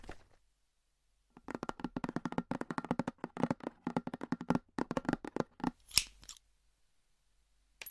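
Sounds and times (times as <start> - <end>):
scratching and tapping: 1.4 - 5.8.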